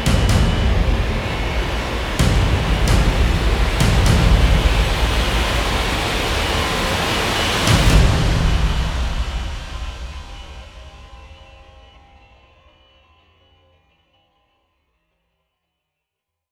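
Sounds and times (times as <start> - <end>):
drums mix: 0.0 - 12.8.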